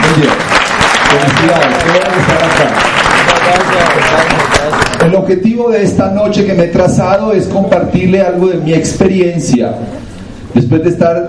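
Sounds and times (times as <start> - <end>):
audience applause: 0.0 - 5.1
speech: 1.4 - 4.5, 5.1 - 11.2.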